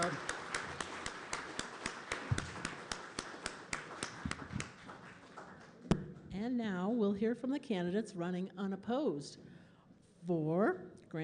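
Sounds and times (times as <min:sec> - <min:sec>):
speech: 0:00.0 - 0:00.3, 0:06.4 - 0:09.5, 0:10.2 - 0:11.2
sparse applause from a small audience: 0:00.0 - 0:05.9.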